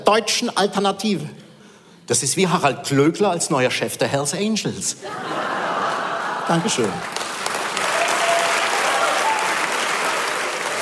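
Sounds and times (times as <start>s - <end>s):
speech: 0.1s - 1.4s, 2.1s - 5.6s, 6.5s - 7.2s
laughter: 5.0s - 7.2s
audience applause: 6.1s - 10.7s.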